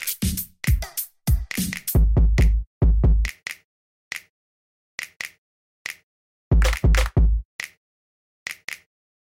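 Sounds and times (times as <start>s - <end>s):
bass rap beat: 0.2s - 3.3s, 6.5s - 7.5s.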